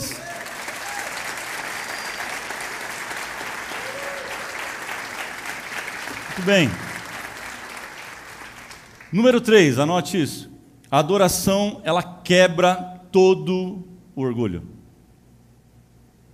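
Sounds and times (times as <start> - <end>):
people clapping: 0.0 - 9.4
speech: 6.4 - 6.8, 9.1 - 14.8.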